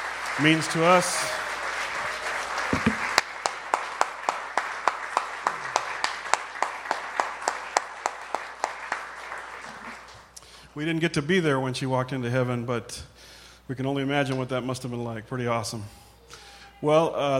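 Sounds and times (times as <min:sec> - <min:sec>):
audience applause: 0:00.0 - 0:10.3
rhythmic clapping beat: 0:00.0 - 0:10.4
speech: 0:00.4 - 0:01.4, 0:10.8 - 0:16.0, 0:16.8 - 0:17.3.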